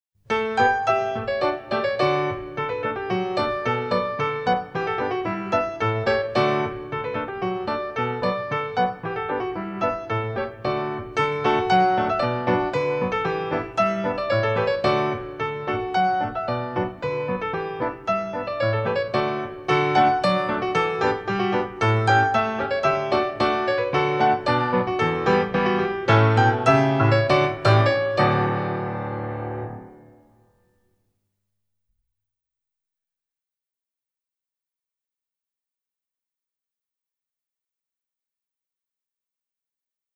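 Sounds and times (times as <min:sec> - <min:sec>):
Krakowiak folk dance music: 0:00.3 - 0:30.2.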